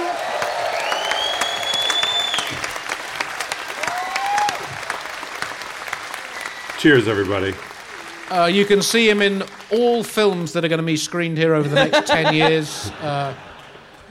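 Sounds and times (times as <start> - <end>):
audience clapping: 0.0 - 11.2, 13.4 - 14.0
whistles: 0.6 - 3.0, 6.3 - 7.2
speech: 6.8 - 7.7, 8.3 - 13.5
laughter: 11.6 - 14.0.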